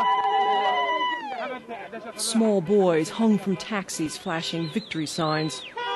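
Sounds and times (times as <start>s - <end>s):
women ululating: 0.0s - 1.6s
speech: 1.7s - 5.8s.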